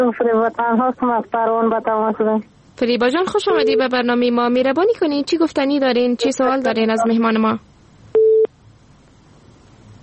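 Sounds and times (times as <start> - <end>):
speech: 0.1 - 7.7
faint hiss: 7.4 - 10.0
telephone busy tone beep after a caller's line drops on radio: 8.2 - 8.5.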